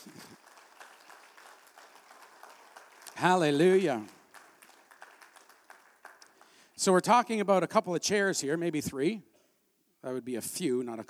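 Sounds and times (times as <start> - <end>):
audience clapping hands in praise: 0.0 - 7.1
speech: 3.2 - 4.2, 6.8 - 9.3, 10.0 - 11.0.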